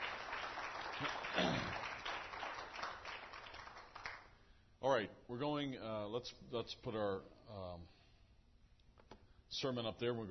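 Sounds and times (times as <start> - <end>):
audience applause for singers and musicians: 0.0 - 4.3
speech: 4.8 - 8.0, 9.5 - 10.2.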